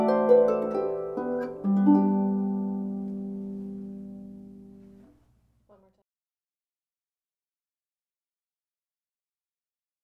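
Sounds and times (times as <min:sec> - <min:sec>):
26-string harp: 0:00.0 - 0:05.0.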